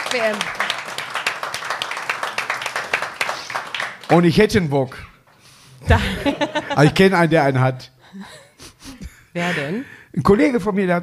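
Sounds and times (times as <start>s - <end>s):
hand clapping: 0.0s - 4.4s
speech: 0.1s - 0.6s, 4.1s - 5.1s, 5.8s - 8.4s, 9.3s - 11.0s
laughter: 5.8s - 7.3s.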